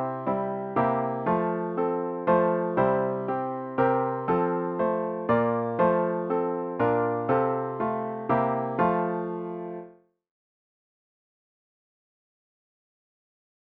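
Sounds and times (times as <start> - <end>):
piano: 0.0 - 10.0.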